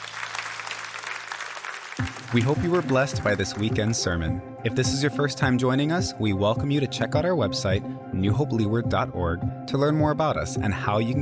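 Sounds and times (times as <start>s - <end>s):
audience hand clapping: 0.0s - 4.2s
speech: 2.0s - 11.1s.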